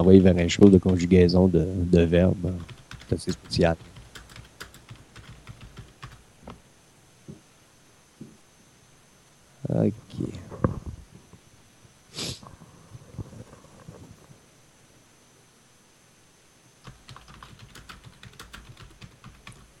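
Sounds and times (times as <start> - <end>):
speech: 0.0 - 3.9, 9.7 - 10.4
typing on a computer keyboard: 0.6 - 1.0, 2.6 - 6.2, 16.8 - 19.7.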